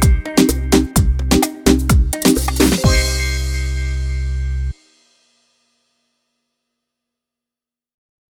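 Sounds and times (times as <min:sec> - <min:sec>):
reggaeton dance music: 0:00.0 - 0:04.7.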